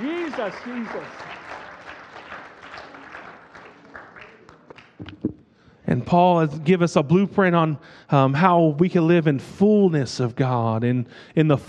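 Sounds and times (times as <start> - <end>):
audience hand clapping: 0.0 - 5.4
speech: 0.4 - 1.3, 6.0 - 11.6.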